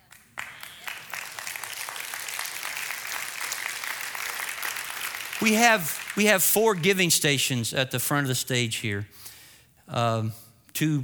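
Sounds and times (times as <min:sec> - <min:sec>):
audience applause: 0:00.0 - 0:07.0
speech: 0:05.4 - 0:09.3, 0:09.9 - 0:11.0.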